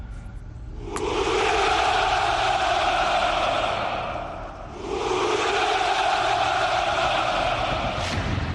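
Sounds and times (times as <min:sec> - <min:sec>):
crowd shouting hurrah at a Russian military commemoration: 0:00.8 - 0:08.2.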